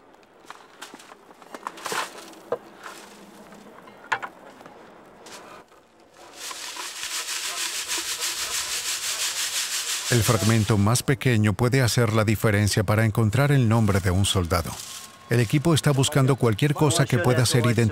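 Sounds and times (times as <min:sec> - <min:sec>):
dirt sifted by hand through a fine mesh screen at an excavation screening station: 0:01.8 - 0:03.6, 0:05.3 - 0:11.0, 0:13.3 - 0:16.2
speech: 0:10.1 - 0:17.9.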